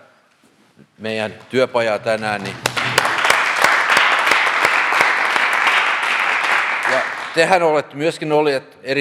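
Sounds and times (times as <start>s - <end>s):
speech: 1.0s - 2.8s, 7.4s - 8.9s
audience applause: 2.0s - 7.6s.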